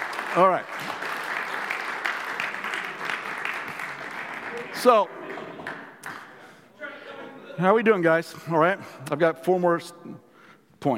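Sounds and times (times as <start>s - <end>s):
audience applause welcoming assistants on stage: 0.0s - 6.4s
speech: 0.4s - 0.8s, 4.8s - 5.2s, 7.6s - 10.9s.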